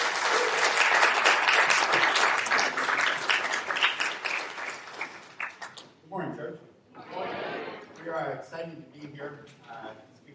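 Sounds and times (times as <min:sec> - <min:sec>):
audience applause: 0:00.0 - 0:05.7
speech: 0:08.4 - 0:10.1.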